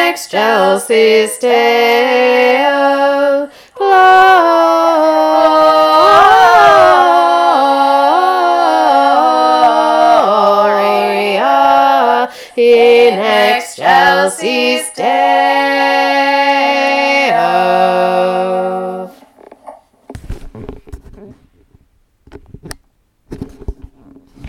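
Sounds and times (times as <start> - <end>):
SATB Christmas choir singing a verse: 0.0 - 19.2.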